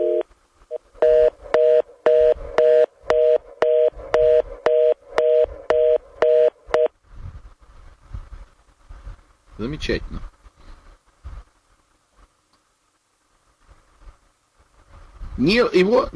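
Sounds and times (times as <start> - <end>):
telephone line tone beeping: 0.0 - 6.9
faint hiss: 0.0 - 16.1
speech: 9.6 - 10.3, 15.4 - 16.1.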